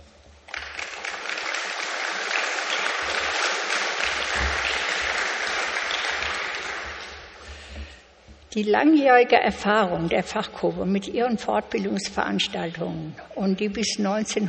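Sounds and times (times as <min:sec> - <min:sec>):
audience applause: 0:00.5 - 0:07.4
speech: 0:08.6 - 0:14.4.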